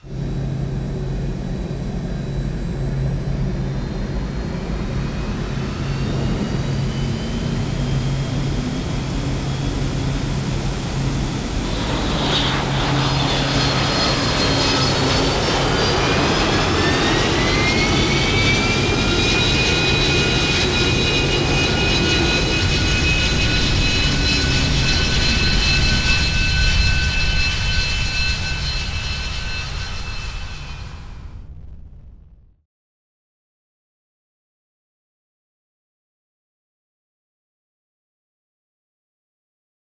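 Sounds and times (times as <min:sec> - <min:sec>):
dropship engine: 0:00.1 - 0:31.9.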